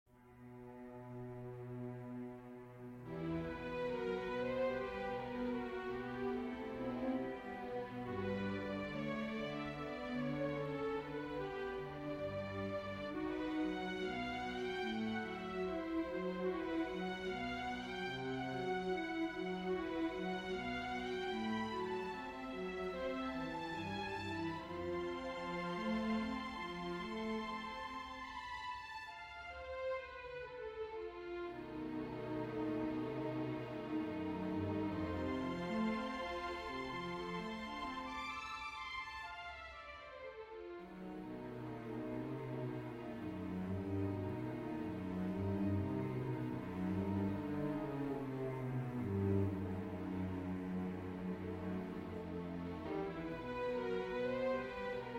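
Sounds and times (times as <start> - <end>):
string quartet: 0.1 - 55.1.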